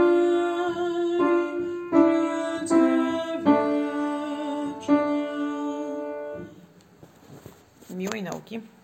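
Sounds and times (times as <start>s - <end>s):
soprano voices singing: 0.0s - 6.7s.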